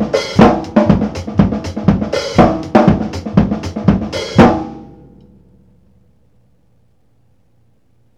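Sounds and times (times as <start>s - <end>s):
acoustic garage disco beat: 0.0s - 4.8s.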